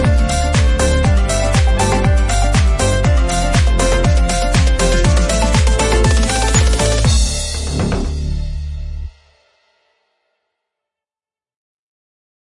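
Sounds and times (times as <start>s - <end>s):
funny bright tropical house dance background music: 0.0s - 8.2s.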